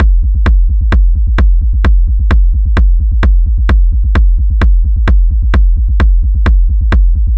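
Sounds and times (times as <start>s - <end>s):
dark techno rolling kick drum loop: 0.0s - 7.3s.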